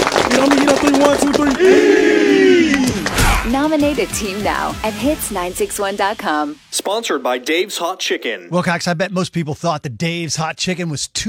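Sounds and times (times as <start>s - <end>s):
football team clapping together: 0.0s - 3.3s
speech: 3.5s - 11.2s.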